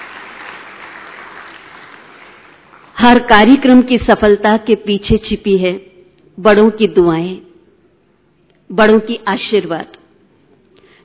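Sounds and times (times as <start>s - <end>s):
audience applause at a stage program: 0.0s - 3.0s
speech: 3.0s - 7.5s, 8.7s - 10.0s.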